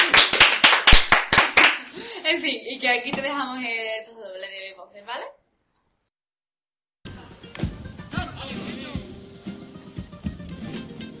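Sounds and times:
group applauding: 0.0 - 2.1
speech: 2.4 - 5.4.

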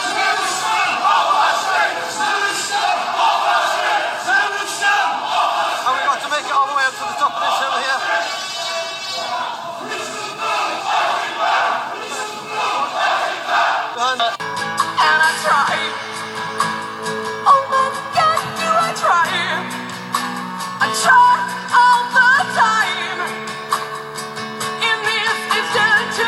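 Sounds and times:
protest crowd chanting and screaming: 0.0 - 24.0, 24.7 - 26.2
upbeat music: 14.2 - 26.2.

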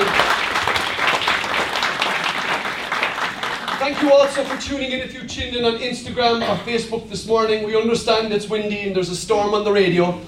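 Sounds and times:
audience applause welcoming visitors: 0.0 - 4.7
speech: 3.9 - 10.2.

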